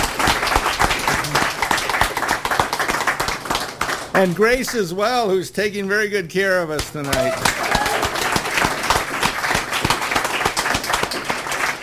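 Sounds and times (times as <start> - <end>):
audience applause: 0.0 - 4.2, 7.0 - 11.8
speech: 4.2 - 7.7.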